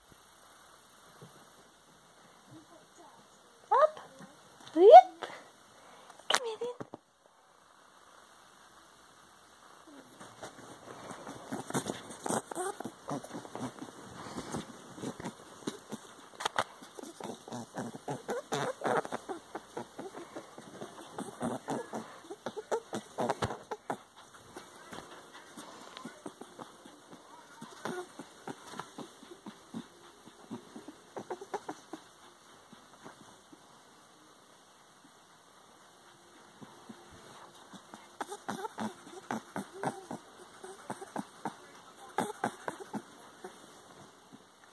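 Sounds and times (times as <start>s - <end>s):
rabbit playing: 5.9s - 44.7s.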